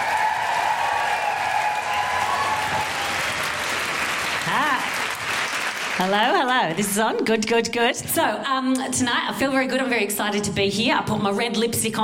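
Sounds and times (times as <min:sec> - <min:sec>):
single rising and falling whoop: 0:00.0 - 0:03.7
audience cheering woohoos for Felicity Ward: 0:00.0 - 0:05.0
audience applauding to welcome comedian Felicity Ward: 0:00.0 - 0:06.7
speech: 0:06.0 - 0:12.0.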